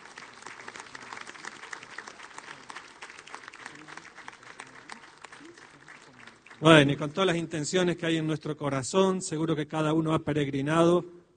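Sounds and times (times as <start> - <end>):
applause: 0.0 - 7.9
speech: 6.6 - 11.2.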